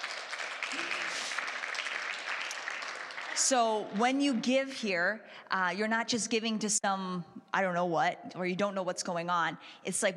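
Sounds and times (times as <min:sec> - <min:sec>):
audience clapping: 0:00.0 - 0:04.4
speech: 0:03.4 - 0:10.1.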